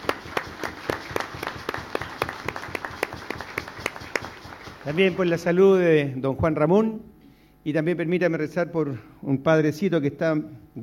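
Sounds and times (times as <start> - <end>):
audience applauding: 0.0 - 5.6
speech: 4.9 - 10.8.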